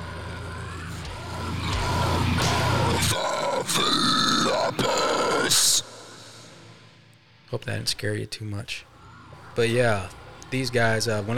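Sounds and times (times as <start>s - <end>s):
layered demonic metal vocal screams and guttural growls: 0.0s - 6.5s
speech: 7.5s - 8.9s, 9.6s - 11.3s.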